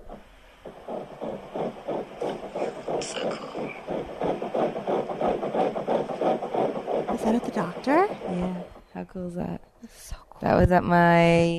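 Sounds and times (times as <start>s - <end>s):
fetal heartbeat on ultrasound doppler: 0.0s - 9.6s
speech: 7.3s - 9.6s, 10.4s - 11.5s.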